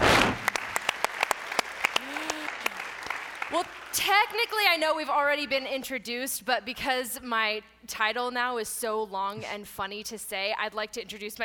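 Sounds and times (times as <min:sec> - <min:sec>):
audience round of applause: 0:00.0 - 0:04.4
speech: 0:03.6 - 0:11.4.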